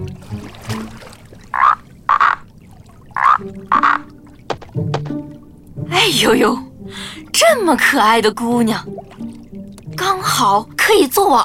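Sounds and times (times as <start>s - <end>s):
toad croaking: 1.5s - 2.5s, 3.2s - 4.2s
speech: 6.1s - 9.0s, 10.0s - 11.4s.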